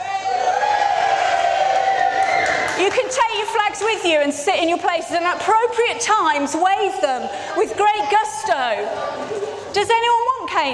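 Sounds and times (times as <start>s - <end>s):
crowd cheering: 0.0s - 4.1s
speech: 3.4s - 10.7s.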